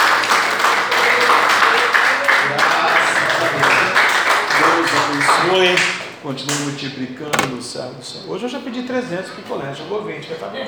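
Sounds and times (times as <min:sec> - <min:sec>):
clapping from a large crowd: 0:00.0 - 0:05.4
speech: 0:05.6 - 0:10.6.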